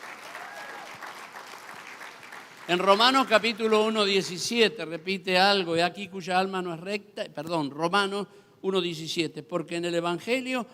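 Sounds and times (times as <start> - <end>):
audience applause: 0.0 - 3.7
speech: 2.7 - 10.7.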